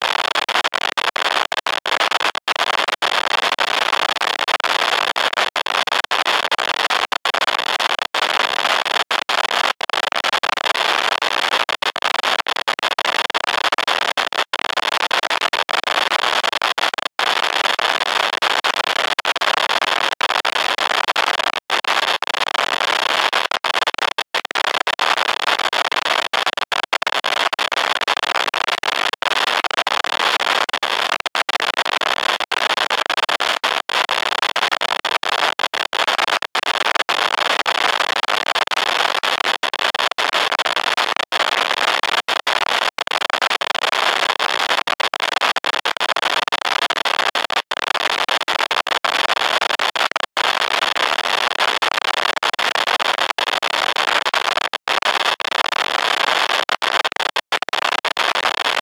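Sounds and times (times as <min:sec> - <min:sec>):
crackling noise: 0:00.0 - 0:58.8.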